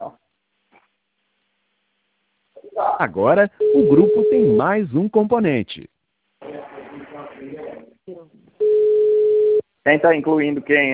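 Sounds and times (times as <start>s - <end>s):
speech: 2.8s - 5.9s, 9.8s - 10.9s
telephone line tone from someone placing a call: 3.6s - 4.6s, 8.6s - 9.6s.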